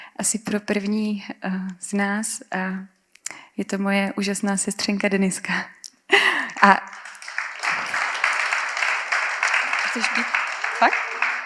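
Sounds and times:
speech: 0.2s - 3.0s, 3.6s - 5.8s, 6.6s - 6.8s, 10.0s - 11.0s
audience applause: 6.7s - 11.4s.

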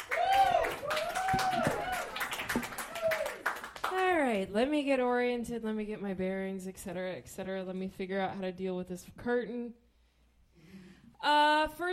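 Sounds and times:
audience applause: 0.0s - 3.9s
speech: 4.3s - 9.8s, 11.2s - 11.9s.

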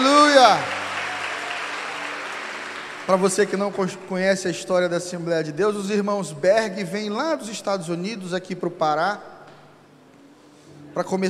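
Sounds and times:
steady applause from a crowd: 0.0s - 4.1s
speech: 0.4s - 0.8s, 3.1s - 9.3s, 11.0s - 11.2s.

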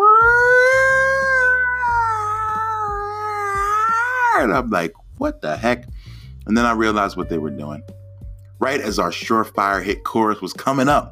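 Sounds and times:
voice imitating a fire truck siren: 0.0s - 4.5s
speech: 4.4s - 8.0s, 8.6s - 11.0s.

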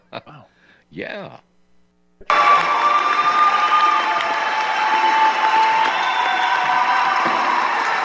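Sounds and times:
speech: 0.2s - 1.5s
crowd cheering in an auditorium: 2.2s - 8.0s.

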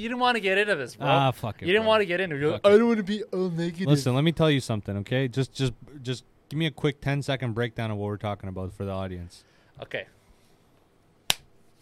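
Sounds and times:
speech: 0.0s - 10.2s
single hand clap: 11.3s - 11.5s.

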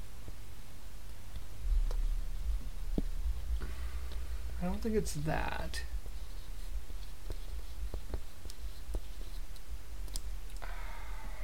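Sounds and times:
steady low hum: 0.0s - 11.4s
speech: 4.6s - 5.9s
pen or pencil writing: 6.0s - 9.7s.

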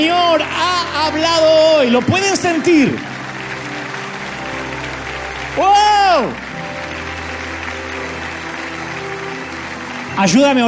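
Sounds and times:
speech: 0.0s - 3.1s, 5.6s - 6.4s, 10.2s - 10.6s
audience applauding: 0.0s - 10.6s.

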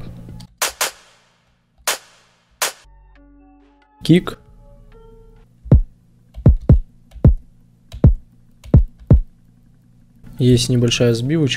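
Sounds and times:
clap drum sample one-shot in a beat: 0.6s - 2.9s, 5.7s - 7.4s
speech: 4.0s - 4.4s, 10.4s - 11.5s.

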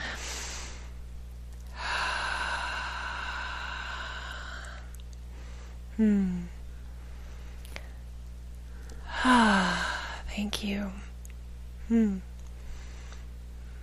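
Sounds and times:
deep breath: 0.0s - 1.0s, 1.7s - 8.0s, 8.7s - 10.3s, 12.6s - 13.8s
speech: 6.0s - 6.5s, 10.6s - 11.1s, 11.9s - 12.3s.

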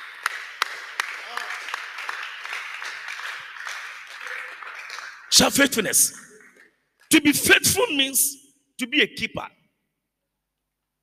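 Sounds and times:
audience clapping: 0.0s - 7.6s
speech: 5.4s - 6.3s, 7.2s - 9.6s.

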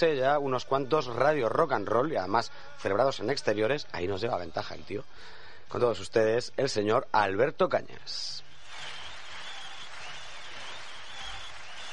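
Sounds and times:
speech: 0.0s - 8.4s
crowd applause: 8.6s - 11.9s.

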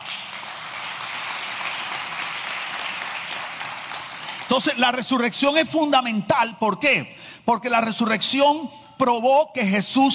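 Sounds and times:
audience applause: 0.0s - 4.8s
speech: 4.5s - 10.1s.

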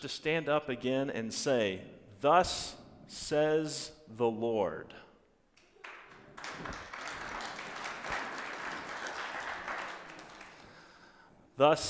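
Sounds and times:
speech: 0.0s - 5.0s, 11.6s - 11.8s
audience applause: 5.8s - 11.0s.

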